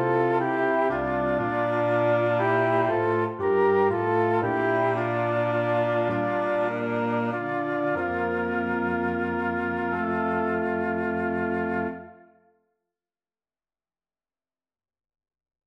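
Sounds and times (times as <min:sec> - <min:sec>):
cello: 0:00.0 - 0:12.2
horn: 0:00.0 - 0:12.3
piano: 0:00.0 - 0:12.4
flute: 0:00.0 - 0:12.5.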